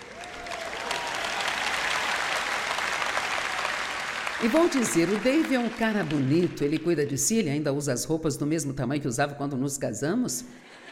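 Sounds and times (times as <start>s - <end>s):
applause: 0.0s - 7.0s
speech: 4.4s - 10.9s.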